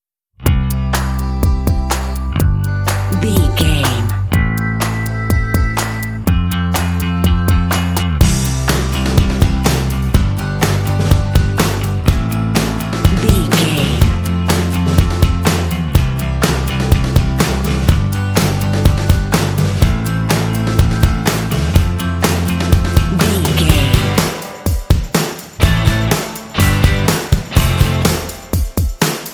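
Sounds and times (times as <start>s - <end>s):
indie music: 0.4s - 29.3s.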